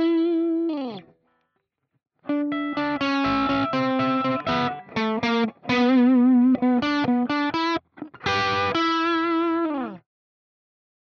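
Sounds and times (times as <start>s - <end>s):
Jackson Pro Plus Soloist SLA3 electric guitar crunch lick: 2.3s - 10.0s.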